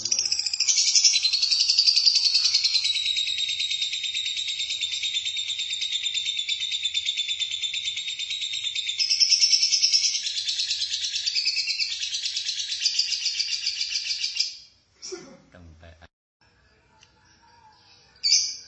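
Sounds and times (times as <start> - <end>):
lovebird chattering trill: 0.0 - 14.5.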